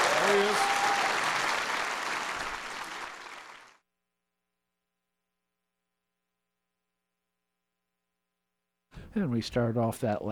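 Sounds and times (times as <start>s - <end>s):
audience applause: 0.0s - 3.8s
speech: 9.2s - 10.3s.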